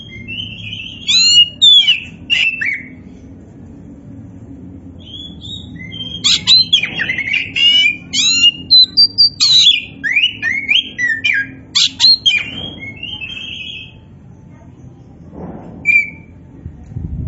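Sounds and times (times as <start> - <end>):
Oriental magpie-robin song: 0.0 - 3.0, 5.0 - 14.0, 15.8 - 16.4
low background hum: 0.0 - 17.2.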